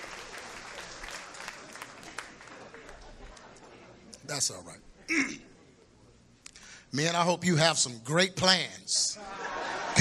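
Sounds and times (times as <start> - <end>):
crowd applauding: 0.0 - 3.6
speech: 4.3 - 5.5, 6.9 - 9.4
laughter: 9.1 - 9.9.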